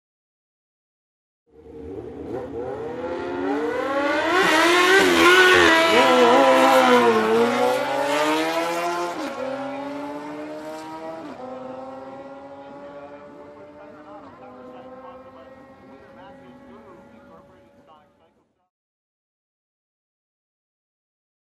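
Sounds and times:
motocross motorcycle engines roaring: 0:01.5 - 0:18.5.

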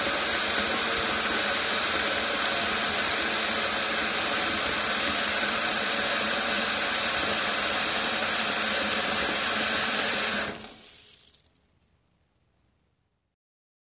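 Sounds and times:
water flowing into a metal sink: 0:00.0 - 0:11.8.

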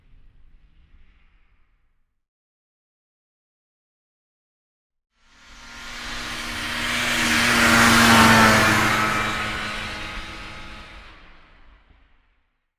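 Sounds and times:
snowmobile passing by: 0:05.2 - 0:12.2.

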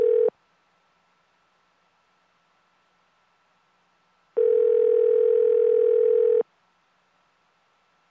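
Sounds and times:
telephone call sound: 0:00.0 - 0:00.3, 0:04.4 - 0:06.4.

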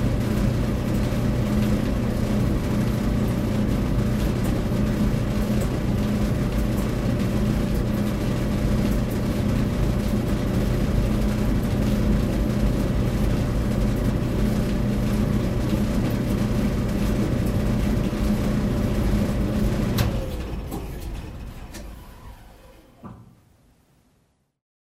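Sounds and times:
washing machine in the laundry room: 0:00.0 - 0:23.5.

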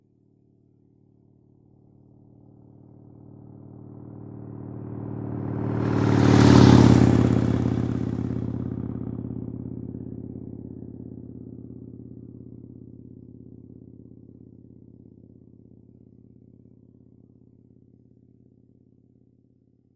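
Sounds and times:
motorcycle passing by: 0:02.4 - 0:12.0.

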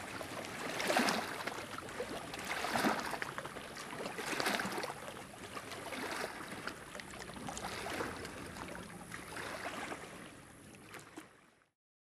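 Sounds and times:
small sea waves: 0:00.0 - 0:11.7.

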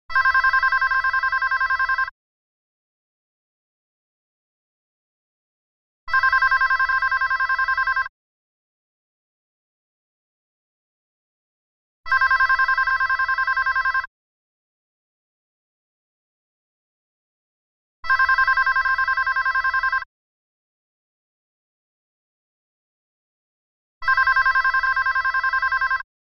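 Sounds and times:
phone ringing: 0:00.1 - 0:02.1, 0:06.1 - 0:08.1, 0:12.1 - 0:14.1, 0:18.1 - 0:20.1, 0:24.0 - 0:26.0.

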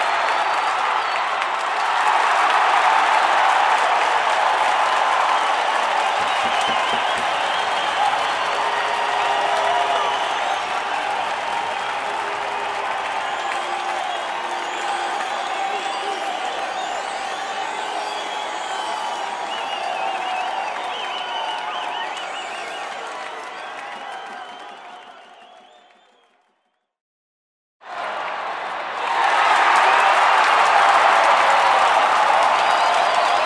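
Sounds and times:
stadium crowd giving a standing ovation from the tribune: 0:00.0 - 0:26.9, 0:27.9 - 0:33.4.

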